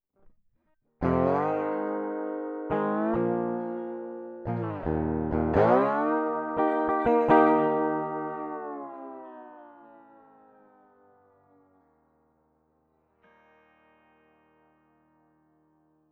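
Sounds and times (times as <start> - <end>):
crunchy blues music: 1.0 - 9.3.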